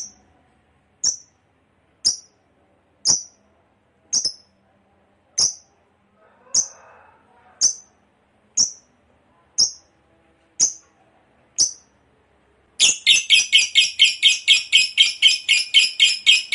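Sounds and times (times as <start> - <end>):
lovebird chirps and long harsh chatter: 1.0 - 1.3, 4.1 - 4.5, 5.4 - 5.7, 6.5 - 6.8, 7.6 - 8.0, 9.6 - 9.9, 10.6 - 10.8, 11.6 - 11.9, 12.8 - 16.5.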